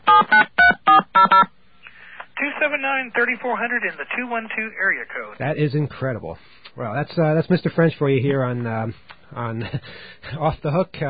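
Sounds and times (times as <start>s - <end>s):
touch-tone dialing beeps: 0.1s - 1.5s
speech: 2.8s - 11.0s.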